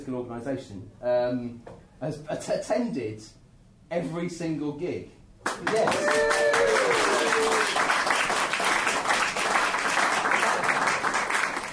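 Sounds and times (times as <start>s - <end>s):
speech: 0.0s - 8.0s
crowd applauding: 5.4s - 11.7s
whistle or cheer: 5.9s - 7.7s.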